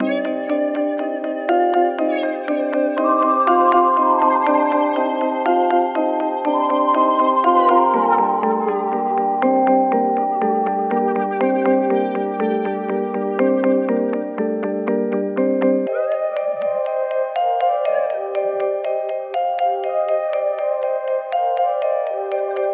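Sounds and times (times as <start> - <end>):
melody in G minor at 121 BPM: 0.0 - 22.7.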